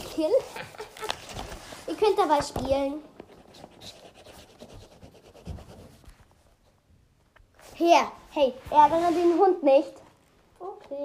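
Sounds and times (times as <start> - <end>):
speech: 0.2 - 0.8, 2.0 - 3.1, 7.8 - 10.0, 10.6 - 11.0
laughter: 0.4 - 1.4
pen scratching on paper drawing a plan: 3.4 - 6.1.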